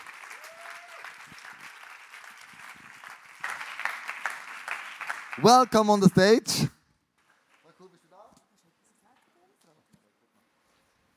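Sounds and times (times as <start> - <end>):
audience applause for a stage guest: 0.0 - 6.6
speech: 5.4 - 6.8.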